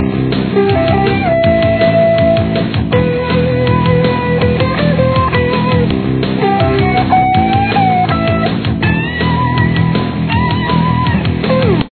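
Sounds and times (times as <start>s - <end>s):
lead guitar: 0.0s - 11.8s.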